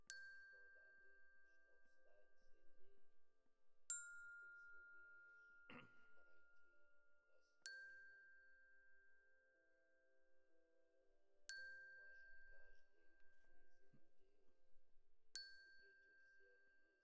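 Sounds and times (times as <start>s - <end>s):
glockenspiel: 0.1s - 2.1s, 3.9s - 9.6s, 11.5s - 13.7s, 15.4s - 17.0s.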